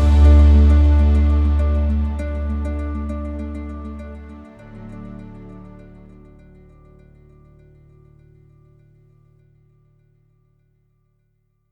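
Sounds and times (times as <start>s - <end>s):
cinematic music mix with reduced vocals: 0.0s - 5.9s.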